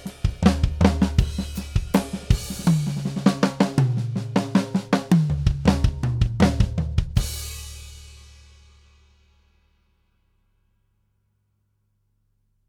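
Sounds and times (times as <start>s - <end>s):
drum test: 0.0s - 9.9s.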